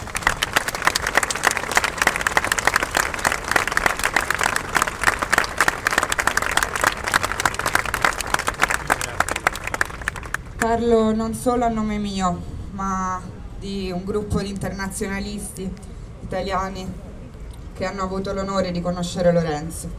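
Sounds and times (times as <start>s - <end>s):
audience applause: 0.0s - 10.6s
speech: 10.6s - 17.0s, 17.8s - 19.9s.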